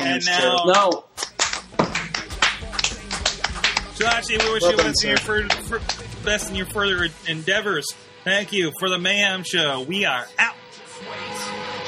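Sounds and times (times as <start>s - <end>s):
speech: 0.0s - 1.1s, 4.0s - 11.4s
round of applause: 1.2s - 6.1s.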